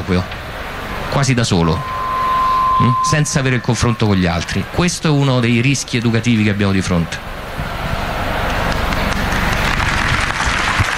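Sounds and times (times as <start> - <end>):
speech: 0.1 - 0.4, 1.1 - 1.9, 2.8 - 7.7
audience applause: 8.0 - 10.9.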